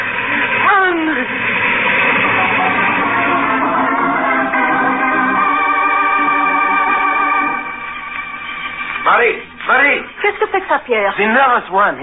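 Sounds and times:
train rumbling: 0.0s - 11.5s
train horn: 2.2s - 8.8s
speech: 10.9s - 12.0s.

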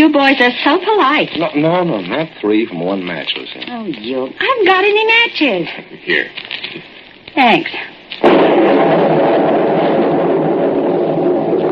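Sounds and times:
speech: 0.0s - 9.5s
thunder crack and rumble from lightning: 8.2s - 11.7s.

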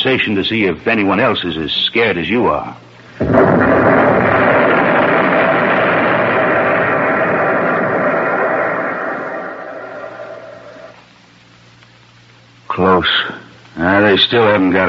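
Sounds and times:
speech: 0.0s - 3.9s, 14.2s - 14.8s
depth charges exploding underwater: 3.1s - 11.2s.

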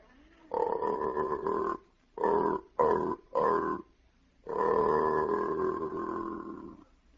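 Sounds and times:
aardvark mating call played backwards, slowed down: 0.5s - 6.9s.

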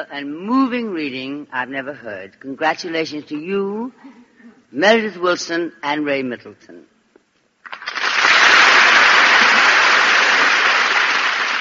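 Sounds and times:
speech: 0.0s - 6.9s
applause: 7.6s - 11.5s.

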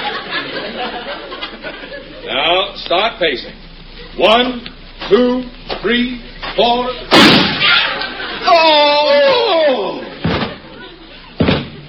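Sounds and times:
laughter: 0.0s - 2.6s, 6.9s - 11.8s
speech: 2.9s - 3.6s, 4.2s - 7.3s, 8.5s - 9.6s
falling vocal wail of people fainting in a radio comedy: 7.6s - 10.1s
bodies thumping on the floor in a radio comedy: 11.4s - 11.8s.

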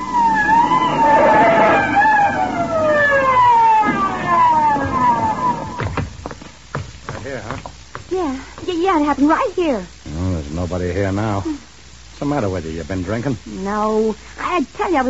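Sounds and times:
police siren wailing: 0.0s - 6.2s
speech: 9.1s - 10.0s, 10.6s - 11.6s, 12.2s - 15.0s.

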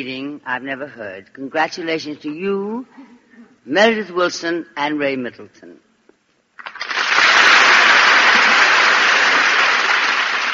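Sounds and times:
speech: 0.0s - 5.8s
audience applause: 6.6s - 10.5s.

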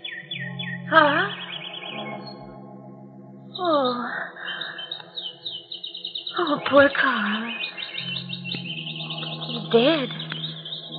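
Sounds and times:
caged small birds chirping: 0.0s - 10.9s
speech: 0.9s - 1.4s, 6.6s - 7.4s, 9.7s - 10.2s
droning hum: 1.9s - 5.2s, 6.4s - 10.9s.

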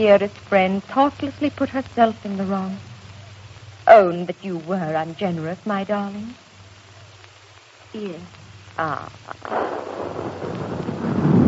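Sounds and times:
speech: 0.0s - 2.9s, 3.9s - 6.4s, 7.9s - 10.6s
distant cannon fire: 9.4s - 11.4s.

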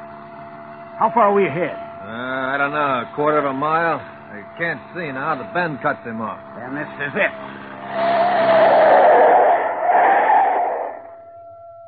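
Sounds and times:
car engine roaring: 0.0s - 11.1s
speech: 1.0s - 8.2s
car tires squealing while spinning a full turn: 5.0s - 11.1s.

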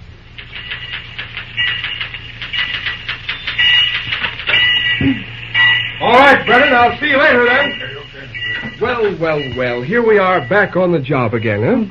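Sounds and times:
typewriter typing: 0.3s - 5.0s
speech: 6.0s - 7.8s, 8.8s - 11.8s.

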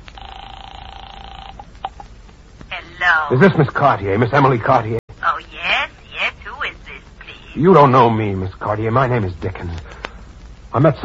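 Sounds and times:
telephone dial tone: 0.2s - 2.0s
speech: 2.8s - 5.0s, 7.6s - 9.9s, 10.8s - 11.0s.

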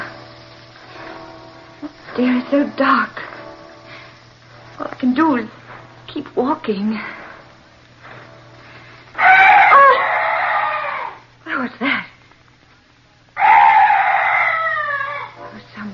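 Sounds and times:
night birds calling: 0.0s - 6.0s, 8.8s - 12.0s, 12.8s - 15.9s
speech: 1.8s - 3.2s, 5.0s - 7.2s.

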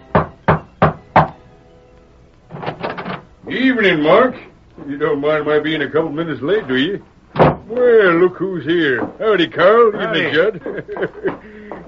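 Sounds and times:
knocking on the door of a ranch house: 0.1s - 1.3s, 7.4s - 7.7s
speech: 3.5s - 7.1s, 7.7s - 11.5s
laughter: 9.8s - 11.8s.

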